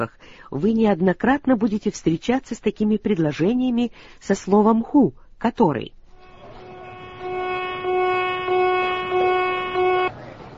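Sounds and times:
speech: 0:00.0 - 0:06.0
fire drill alarm on a ship: 0:06.1 - 0:10.1.

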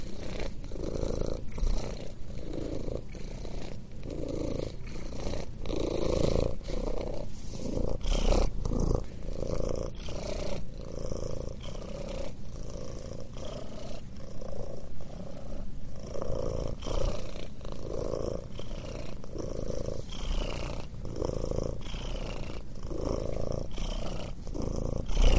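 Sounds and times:
cat purring: 0:00.0 - 0:25.3.

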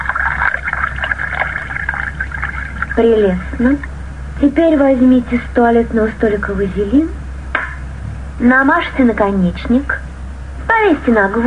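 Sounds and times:
water poured from a decanter: 0:00.0 - 0:03.7
speech: 0:03.0 - 0:07.2, 0:08.4 - 0:10.0, 0:10.8 - 0:11.4.

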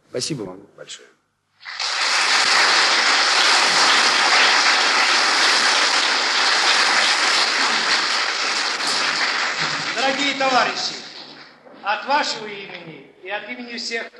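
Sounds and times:
speech: 0:00.1 - 0:01.8, 0:10.4 - 0:11.1, 0:11.8 - 0:14.1
audience applause in a hall: 0:01.6 - 0:11.6.

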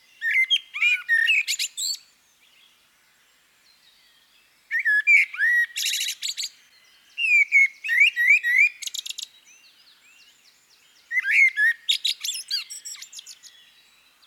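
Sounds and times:
common blackbird Turdus merula singing: 0:00.0 - 0:02.7, 0:03.9 - 0:14.2.

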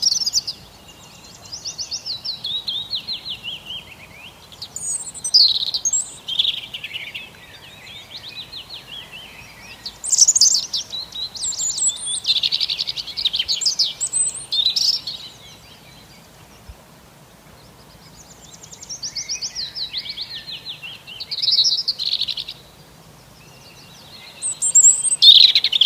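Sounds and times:
several birds singing: 0:00.0 - 0:25.8.

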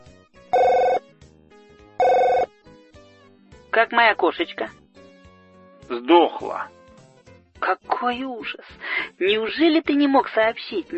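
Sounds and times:
telephone ringing in electronic bursts: 0:00.5 - 0:01.0, 0:02.0 - 0:02.5
speech: 0:03.8 - 0:04.8, 0:05.9 - 0:06.8, 0:07.6 - 0:10.9.

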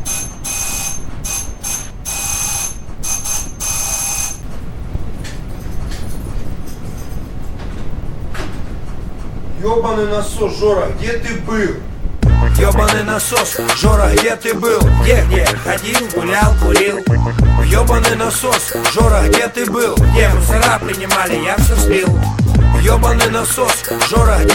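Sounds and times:
doorbell ringing: 0:00.0 - 0:04.4
speech: 0:09.6 - 0:11.9, 0:12.6 - 0:24.5.

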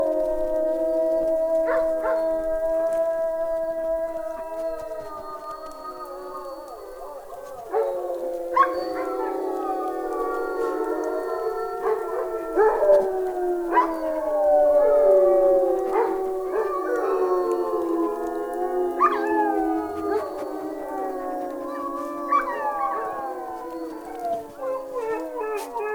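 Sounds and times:
wolves howling in chorus: 0:00.0 - 0:25.9.

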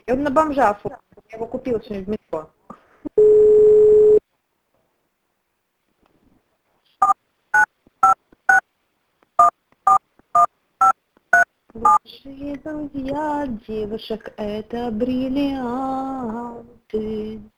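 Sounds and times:
speech: 0:00.1 - 0:02.6, 0:11.8 - 0:17.5
telephone dial tone: 0:03.2 - 0:04.2
touch-tone beeps of a phone number being dialed: 0:07.0 - 0:08.2, 0:09.4 - 0:10.5.

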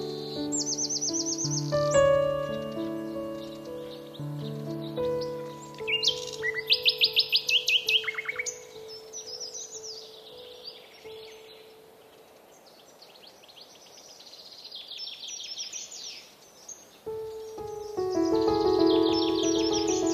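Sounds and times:
bird singing: 0:00.0 - 0:20.1
sustained musical tones with soft low notes: 0:01.7 - 0:05.9, 0:17.3 - 0:20.1.

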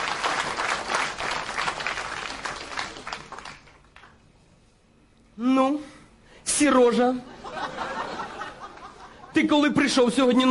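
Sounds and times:
audience applauding: 0:00.0 - 0:04.2
speech: 0:06.6 - 0:07.3, 0:09.4 - 0:10.4
laughter: 0:07.3 - 0:09.5.

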